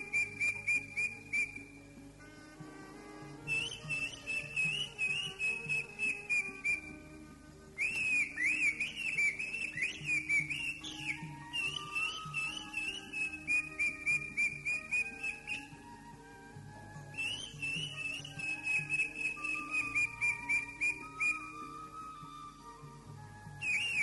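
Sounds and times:
greater green leafbird song: 0.0s - 2.0s, 3.4s - 7.1s, 7.8s - 24.0s.

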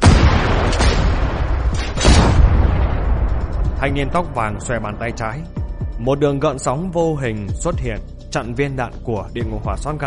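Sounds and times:
heavy booming gunshot blasts: 0.0s - 4.3s
sharp crackling gunshot bursts: 0.0s - 5.1s
speech: 3.8s - 10.0s.

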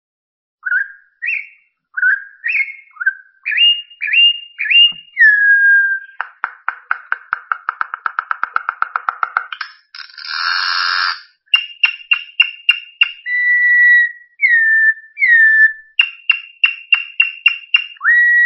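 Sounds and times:
bird singing with buzzy burst, trill and whistled tones: 0.6s - 18.4s.

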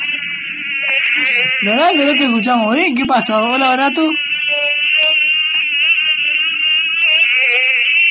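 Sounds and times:
mosquitoes buzzing over a phone line from a botanical garden: 0.0s - 8.0s
speech: 1.2s - 4.3s.

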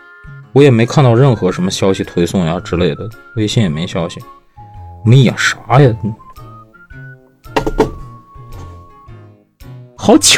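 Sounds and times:
speech: 0.5s - 4.4s, 5.0s - 6.2s, 10.1s - 10.3s
knocking on a door: 7.6s - 8.1s.

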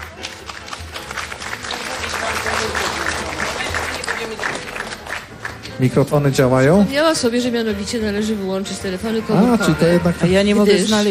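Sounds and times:
festival audience applauding: 0.0s - 5.8s
speech: 5.8s - 11.0s.

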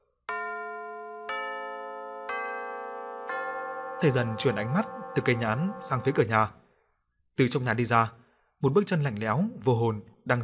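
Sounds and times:
pendulum clock striking three o'clock: 0.3s - 6.3s
speech: 4.0s - 6.6s, 7.4s - 10.4s.

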